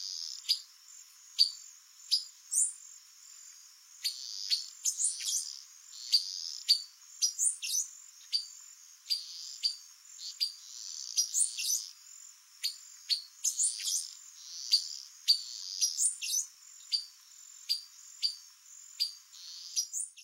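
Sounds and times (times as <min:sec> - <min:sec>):
pipira vermelha singing: 0:04.0 - 0:12.0, 0:12.6 - 0:18.4, 0:19.0 - 0:20.2.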